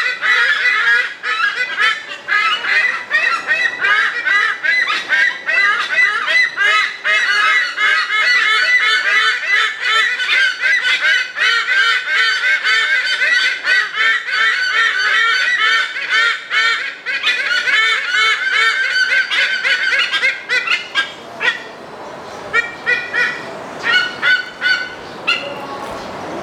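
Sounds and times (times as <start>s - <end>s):
white-bellied sea eagle calling: 0.0s - 21.8s, 22.4s - 26.0s.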